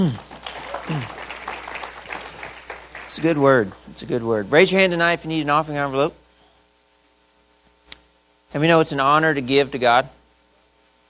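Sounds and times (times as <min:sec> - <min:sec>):
speech: 0:00.0 - 0:00.3, 0:00.9 - 0:01.2, 0:03.1 - 0:06.2, 0:08.5 - 0:10.2
congregation clapping for a pastor at a church service: 0:00.0 - 0:03.9
person speaking over applause: 0:00.5 - 0:03.8.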